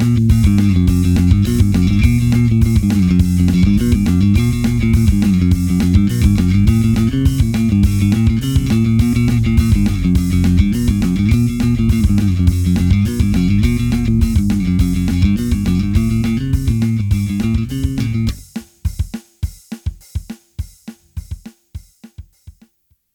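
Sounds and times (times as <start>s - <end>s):
bass: 0.0s - 18.5s
rock beat: 0.0s - 22.7s.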